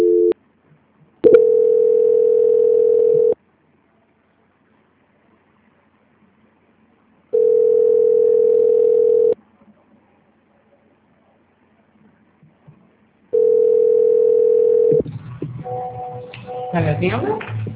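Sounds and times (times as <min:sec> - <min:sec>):
telephone line tones during a call transfer: 0:00.0 - 0:00.4, 0:01.2 - 0:03.4, 0:07.3 - 0:09.4, 0:13.3 - 0:15.0
speech: 0:17.0 - 0:17.5.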